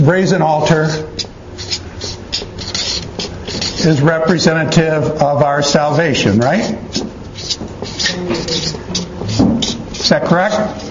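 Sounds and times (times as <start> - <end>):
speech: 0.0 - 1.3, 3.8 - 6.9, 10.0 - 10.8
writing by hand: 0.7 - 4.0, 6.6 - 10.8.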